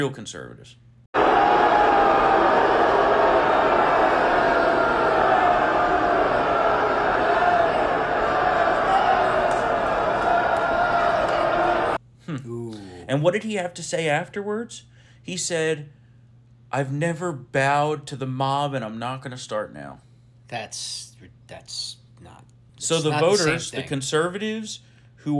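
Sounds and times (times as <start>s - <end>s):
speech: 0.0s - 2.5s, 12.3s - 16.0s, 16.7s - 25.3s
convention crowd roaring: 1.2s - 12.0s.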